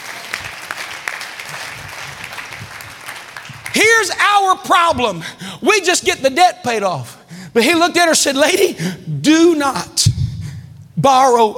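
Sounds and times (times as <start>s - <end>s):
audience clapping hands: 0.0s - 4.6s
speech: 4.0s - 10.1s, 11.0s - 11.5s.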